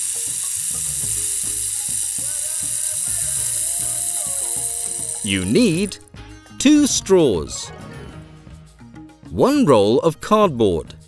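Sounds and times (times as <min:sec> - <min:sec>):
rain stick tilted: 0:00.0 - 0:06.0
speech: 0:05.2 - 0:06.0, 0:06.6 - 0:07.8, 0:09.4 - 0:11.0.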